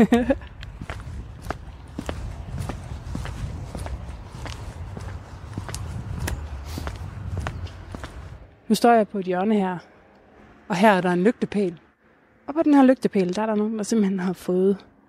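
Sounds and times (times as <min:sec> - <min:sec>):
speech: 0:00.0 - 0:00.5, 0:08.7 - 0:09.9, 0:10.7 - 0:11.8, 0:12.5 - 0:14.9
laughter: 0:00.0 - 0:00.6
footsteps walking around a residential neighbourhood: 0:00.0 - 0:08.5.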